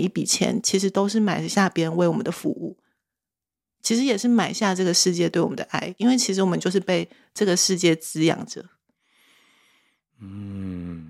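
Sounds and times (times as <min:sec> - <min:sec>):
speech: 0:00.0 - 0:02.8, 0:03.8 - 0:08.8, 0:10.2 - 0:11.0
sudden deep breath: 0:08.9 - 0:11.0.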